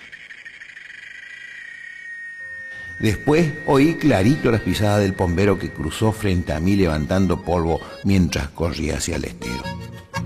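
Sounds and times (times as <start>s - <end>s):
cicada singing: 0.0s - 7.6s
speech: 3.0s - 10.0s.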